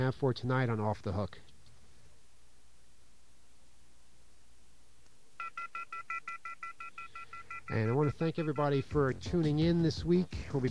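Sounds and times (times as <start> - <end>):
speech: 0.0 - 1.5, 7.7 - 10.6
telephone touch-tone dialing: 5.4 - 8.9.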